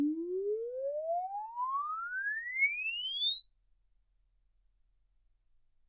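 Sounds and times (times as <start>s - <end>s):
exponential sine sweep from 10 Hz to 24 kHz: 0.2s - 5.1s.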